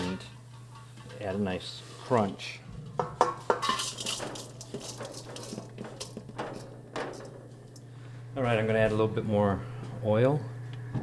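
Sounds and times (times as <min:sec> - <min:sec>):
utensil clinking and scraping against a metal pan: 0:00.0 - 0:07.7
low hum: 0:00.0 - 0:11.0
speech: 0:01.2 - 0:02.6, 0:04.7 - 0:05.9, 0:08.4 - 0:11.0.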